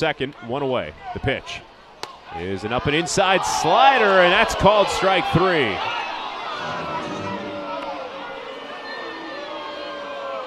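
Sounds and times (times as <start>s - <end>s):
speech: 0.0s - 1.7s, 2.3s - 6.0s
baseball crowd disapproving a called third strike: 6.4s - 10.4s.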